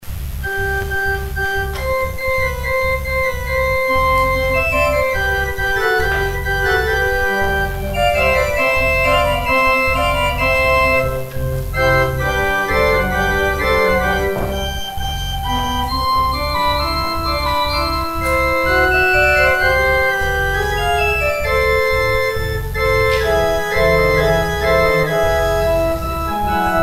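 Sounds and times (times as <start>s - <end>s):
organ interlude: 0.4s - 26.8s.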